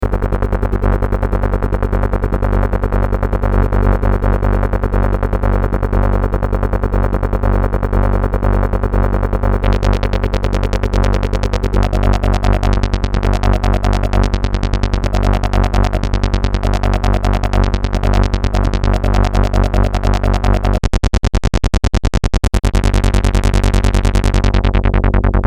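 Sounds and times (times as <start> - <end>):
arpeggiated bass: 0.0 - 25.4.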